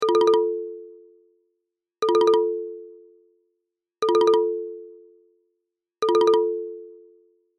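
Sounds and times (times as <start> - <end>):
marimba ringtone: 0.0 - 0.6, 2.0 - 2.6, 4.0 - 4.7, 6.0 - 6.9.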